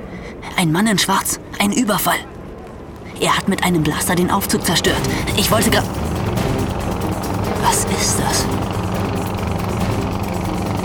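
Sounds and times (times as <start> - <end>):
speech: 0.6 - 2.3, 3.2 - 6.1, 7.6 - 8.7
helicopter: 3.9 - 10.8.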